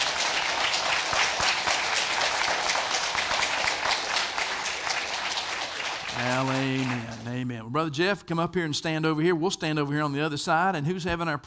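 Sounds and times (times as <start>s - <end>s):
crowd applause: 0.0s - 7.4s
speech: 6.4s - 11.4s.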